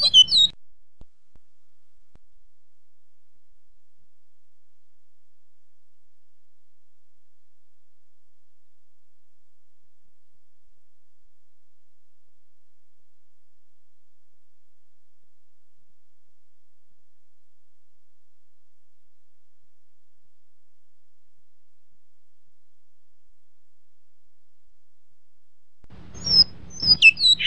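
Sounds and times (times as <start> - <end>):
great-billed seed finch whistling song with buzzy rattle: 0.0 - 0.5, 26.2 - 27.4.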